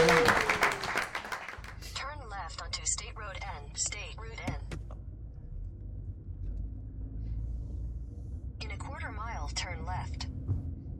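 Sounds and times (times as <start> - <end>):
crowd applause: 0.0 - 1.8
steady low rumble like a moving car interior: 2.0 - 10.9.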